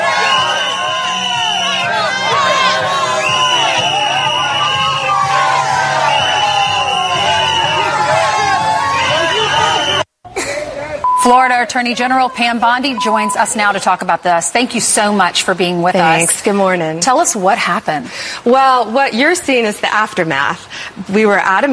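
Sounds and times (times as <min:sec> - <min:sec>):
crowd booing and shouting at a politician: 0:00.0 - 0:10.0
speech: 0:11.2 - 0:21.7.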